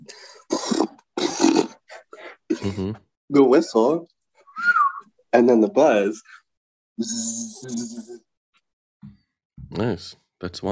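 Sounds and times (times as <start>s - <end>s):
person voicing a horse snort: 0.4s - 3.0s, 7.0s - 8.2s
speech: 2.6s - 4.2s, 5.3s - 6.4s, 7.0s - 8.3s, 9.0s - 10.7s.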